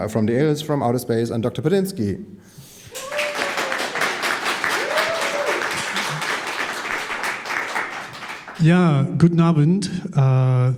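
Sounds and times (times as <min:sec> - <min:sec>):
speech: 0:00.0 - 0:02.6, 0:08.6 - 0:10.7
audience applause at a live show in Potsdam: 0:02.9 - 0:08.6.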